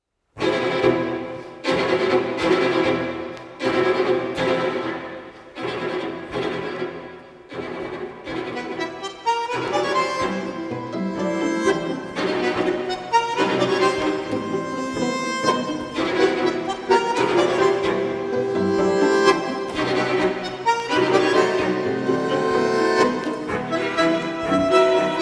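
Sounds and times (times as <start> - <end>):
string quintet: 0.4 - 25.1.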